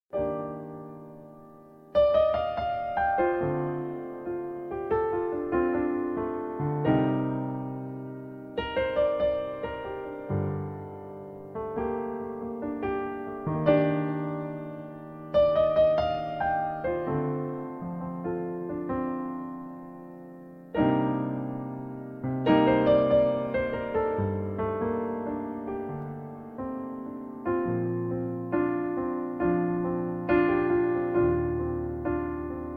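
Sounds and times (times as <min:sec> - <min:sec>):
improvised music: 0:00.1 - 0:32.7.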